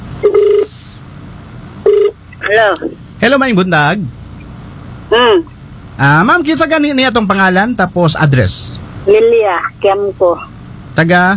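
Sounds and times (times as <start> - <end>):
buzzing phone ringback tone of an outgoing call to a radio listener: 0.2 - 0.7, 1.8 - 2.2
speech: 2.5 - 4.2, 5.1 - 11.3.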